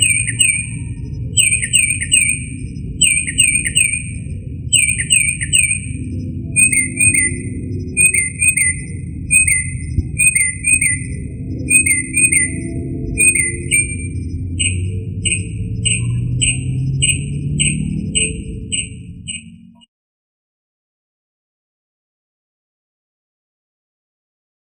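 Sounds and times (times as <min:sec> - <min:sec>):
low background hum: 0:00.0 - 0:19.7
northern mockingbird song of chirped notes: 0:00.0 - 0:19.9.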